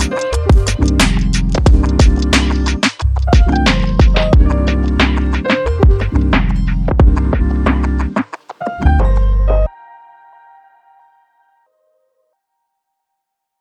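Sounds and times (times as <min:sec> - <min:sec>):
groovy hip hop music: 0:00.0 - 0:09.7.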